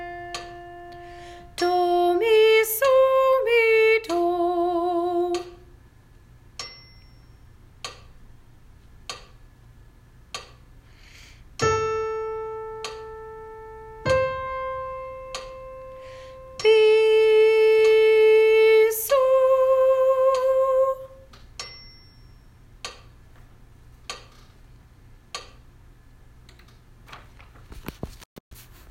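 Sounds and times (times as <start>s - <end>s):
soprano sight reading patterns: 0.0s - 5.7s, 16.4s - 21.3s.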